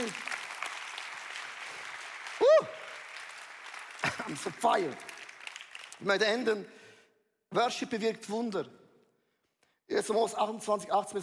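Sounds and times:
rising cheer: 0:00.0 - 0:03.9
audience applause: 0:00.0 - 0:06.0
speech: 0:04.3 - 0:05.1, 0:06.0 - 0:06.8, 0:07.5 - 0:08.8, 0:09.9 - 0:11.2.

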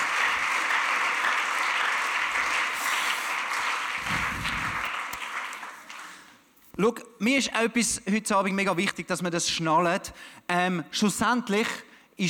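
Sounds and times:
audience applause: 0:00.0 - 0:06.4
speech: 0:06.8 - 0:12.2.

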